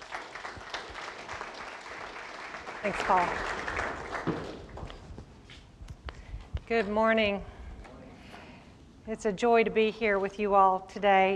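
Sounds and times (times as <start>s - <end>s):
crowd applauding: 0.0s - 5.1s
speech: 2.8s - 3.6s, 6.7s - 7.5s, 9.1s - 11.3s.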